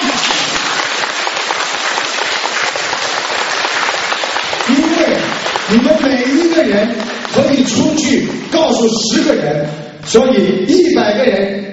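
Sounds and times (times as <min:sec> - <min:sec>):
audience applause: 0:00.0 - 0:08.2
speech: 0:05.7 - 0:11.7.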